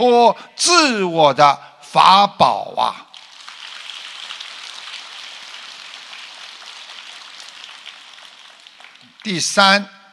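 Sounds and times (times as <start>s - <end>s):
speech: 0.0s - 3.0s, 9.2s - 10.0s
audience applauding: 3.1s - 9.5s.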